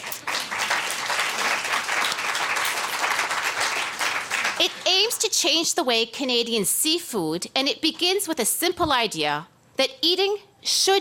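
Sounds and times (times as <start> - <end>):
audience applause: 0.0 - 4.8
speech: 4.6 - 10.9.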